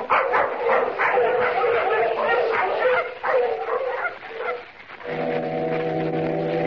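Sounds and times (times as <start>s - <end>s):
pack of sled dogs barking and yipping: 0.0s - 4.9s
foghorn blast: 5.0s - 6.6s.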